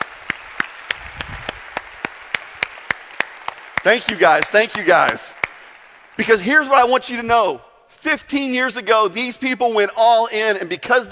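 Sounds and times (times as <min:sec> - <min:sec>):
audience applause: 0:00.0 - 0:06.8
speech: 0:03.8 - 0:05.4, 0:06.2 - 0:11.0.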